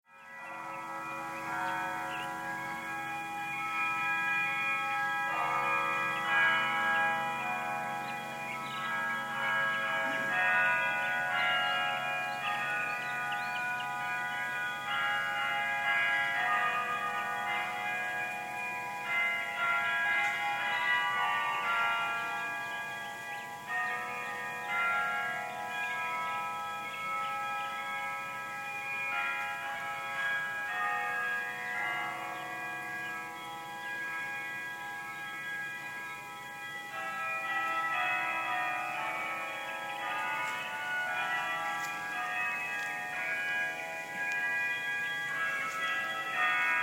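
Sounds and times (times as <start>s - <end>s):
carillon bells: 0.1s - 46.8s.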